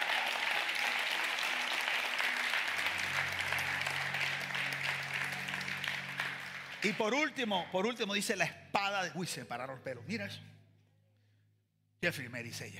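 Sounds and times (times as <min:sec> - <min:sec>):
audience applause: 0:00.0 - 0:07.8
speech: 0:06.8 - 0:10.5, 0:12.0 - 0:12.7.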